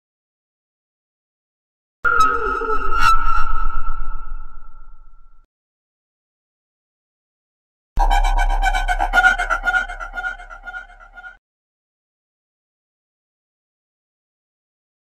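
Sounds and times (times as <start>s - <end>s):
scary horror sound effects: 2.1s - 5.4s, 8.0s - 11.4s.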